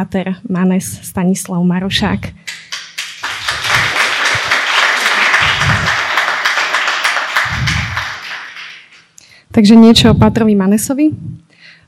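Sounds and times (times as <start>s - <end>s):
speech: 0.0s - 2.5s, 9.6s - 11.5s
audience clapping to welcome a Dominican priest: 2.4s - 9.2s.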